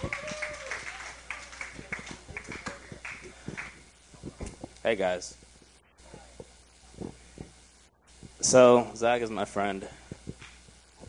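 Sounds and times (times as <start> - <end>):
audience applause: 0.0 - 3.8
speech: 4.8 - 5.4, 8.5 - 10.0.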